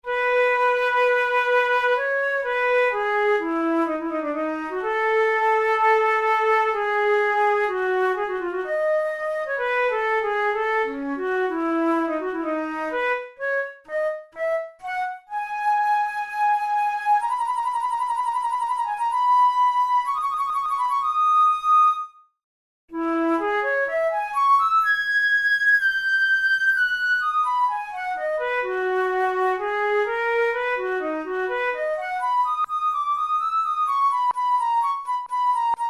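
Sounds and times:
studies for the Boehm flute: 0.0 - 22.3, 22.9 - 35.8.

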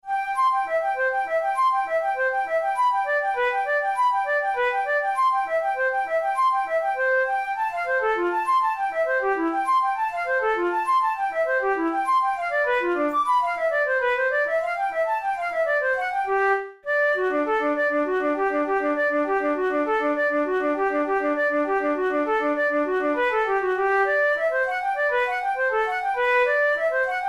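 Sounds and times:
transverse flute capriccio: 0.0 - 27.2.

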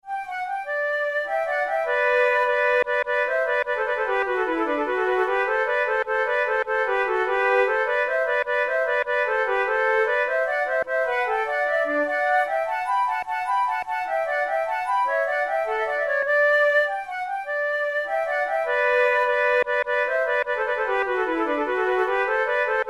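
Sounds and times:
flute playing a gigue: 0.0 - 22.8.

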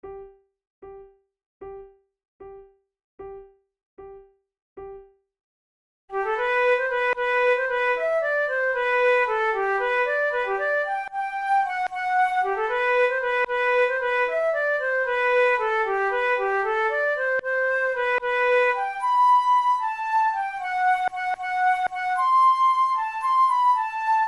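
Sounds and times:
flute duet playing tunes: 6.1 - 24.2.

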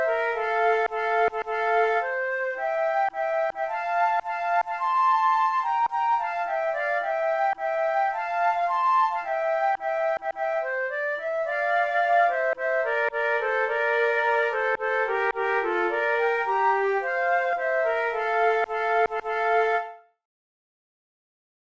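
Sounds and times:
flute duet playing a march: 0.0 - 20.0.

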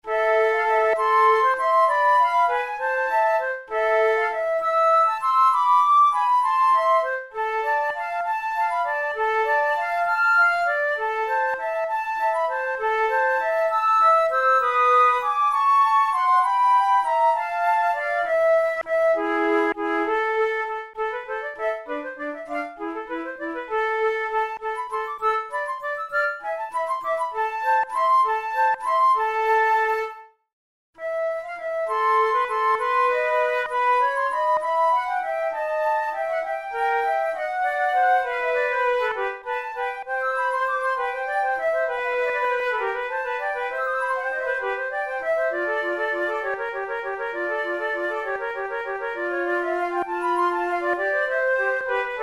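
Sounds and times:
andante music: 0.0 - 30.4, 31.0 - 52.2.

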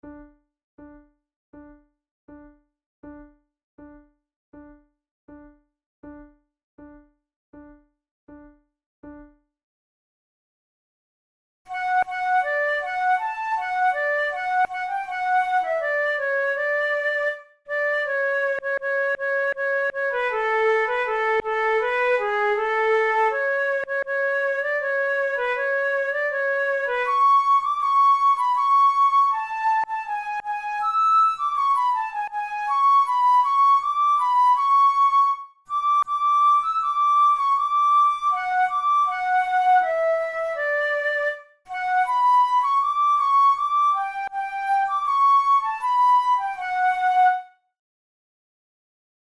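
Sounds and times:
flute duet: 11.7 - 47.6.

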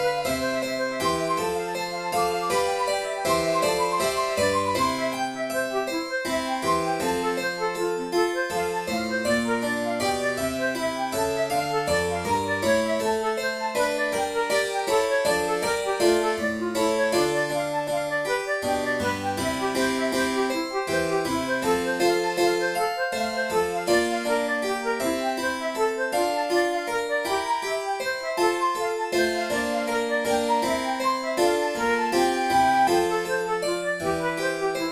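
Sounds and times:
flute playing a baroque violin sonata movement: 0.0 - 34.9.

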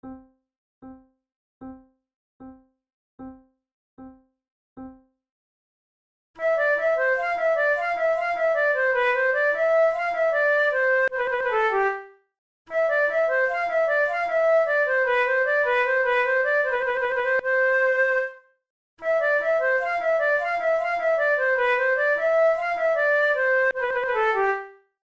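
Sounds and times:
flute: 6.4 - 12.1, 12.7 - 18.4, 19.0 - 24.8
musette: 6.4 - 18.4, 19.0 - 24.8.

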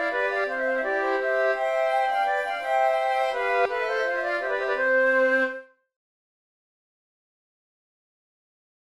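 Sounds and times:
flute tunes: 0.0 - 5.8
musette: 0.0 - 5.8.

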